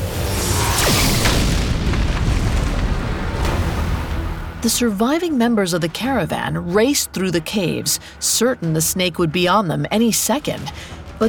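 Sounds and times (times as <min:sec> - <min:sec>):
massive blast: 0:00.0 - 0:04.7
roaring rumble of collapsing rock: 0:00.9 - 0:04.6
speech: 0:04.6 - 0:11.2.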